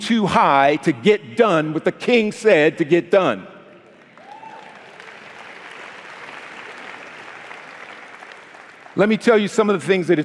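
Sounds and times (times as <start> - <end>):
speech: 0.1 - 3.5, 9.0 - 10.2
audience clapping: 3.8 - 9.8.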